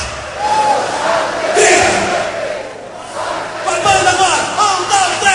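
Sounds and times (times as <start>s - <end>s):
crowd shouting: 0.2s - 5.2s.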